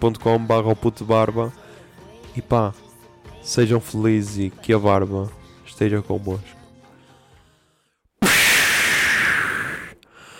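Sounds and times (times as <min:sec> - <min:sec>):
speech: 0:00.0 - 0:01.6, 0:02.4 - 0:06.6
smoke bomb whoosh sound effect: 0:08.2 - 0:10.0.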